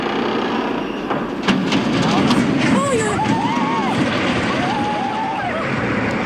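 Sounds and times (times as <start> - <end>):
huge iron beams screeching as they bend: 0.0 - 5.9
San Miguel bridge crashing into the river: 1.2 - 6.2.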